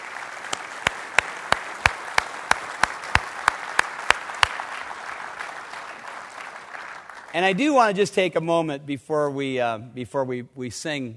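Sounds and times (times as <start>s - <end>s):
audience applause: 0.0s - 7.7s
speech: 7.3s - 11.1s.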